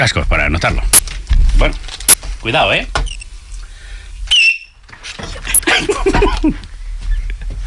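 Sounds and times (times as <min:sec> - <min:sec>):
speech: 0:00.0 - 0:01.0, 0:01.6 - 0:03.0, 0:05.8 - 0:06.7
loud shrill human whistle: 0:04.3 - 0:04.8
laughter: 0:05.5 - 0:06.7.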